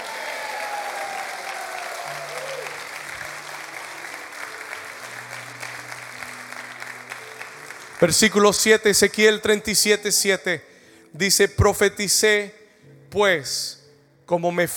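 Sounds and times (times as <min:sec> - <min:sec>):
audience applauding loudly: 0:00.0 - 0:08.6
speech: 0:08.0 - 0:12.6, 0:13.2 - 0:14.7.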